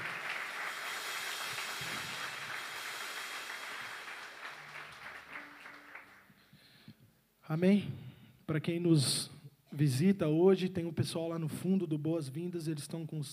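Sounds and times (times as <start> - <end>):
audience applause: 0.0 - 6.4
speech: 7.5 - 13.3.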